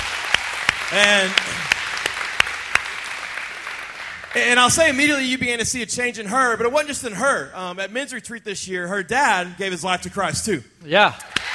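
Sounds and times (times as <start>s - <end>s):
audience applause: 0.0s - 5.2s, 11.3s - 11.5s
speech: 0.9s - 1.7s, 4.4s - 11.4s.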